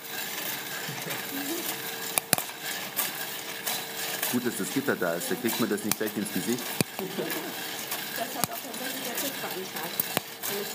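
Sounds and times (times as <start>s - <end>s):
coffee beans cracking while roasting: 0.0s - 10.7s
steady hissing whirring roar: 0.0s - 10.7s
speech: 4.3s - 7.7s, 9.6s - 10.7s.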